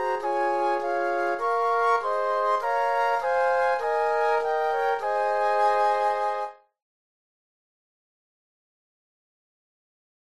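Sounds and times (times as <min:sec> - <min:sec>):
flute quartet: 0:00.0 - 0:06.7.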